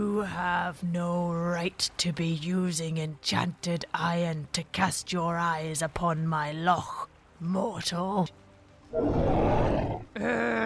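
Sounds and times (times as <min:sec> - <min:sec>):
speech: 0:00.2 - 0:10.6
loch monster growling: 0:09.0 - 0:10.4.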